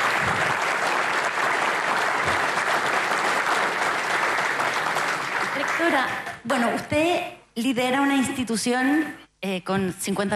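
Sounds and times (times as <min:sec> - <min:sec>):
large audience applause: 0:00.0 - 0:06.3
speech: 0:06.0 - 0:10.3.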